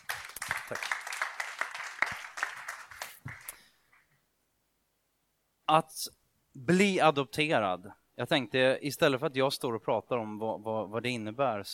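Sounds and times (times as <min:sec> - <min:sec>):
audience applause: 0:00.0 - 0:03.6
speech: 0:00.7 - 0:01.0, 0:05.7 - 0:11.7.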